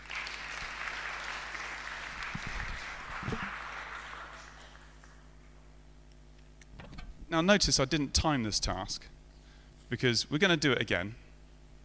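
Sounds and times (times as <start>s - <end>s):
crowd applause: 0.0s - 5.2s
speech: 7.4s - 9.2s, 9.9s - 11.2s.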